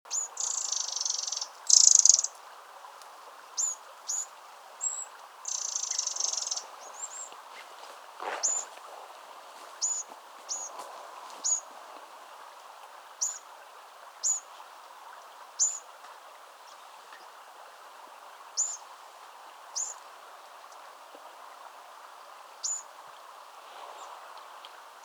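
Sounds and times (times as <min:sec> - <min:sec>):
Eurasian wren calls: 0:00.1 - 0:02.4, 0:03.6 - 0:07.7, 0:08.4 - 0:08.8, 0:09.8 - 0:10.8, 0:11.4 - 0:11.7, 0:13.2 - 0:13.4, 0:14.2 - 0:14.4, 0:15.6 - 0:15.8, 0:18.6 - 0:18.8, 0:19.8 - 0:20.0, 0:22.6 - 0:22.9
low background hiss: 0:00.1 - 0:25.0.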